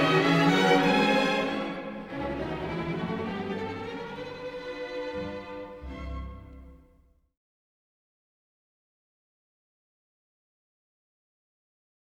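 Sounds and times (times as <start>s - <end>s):
symphonic fairy tale orchestral music: 0.0s - 6.9s.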